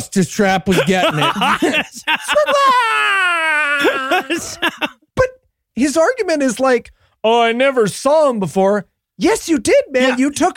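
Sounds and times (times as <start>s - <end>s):
speech: 0.1s - 10.5s
laughter: 0.7s - 5.0s
screeching scream of a monster fetus: 2.4s - 4.6s.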